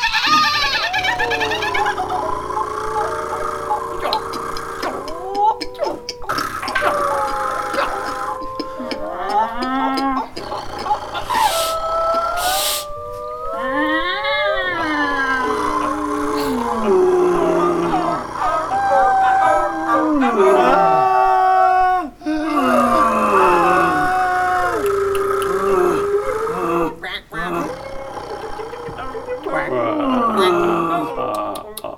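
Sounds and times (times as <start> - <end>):
laughter: 0.0 - 12.9, 14.8 - 31.9
animal imitations: 0.0 - 31.9.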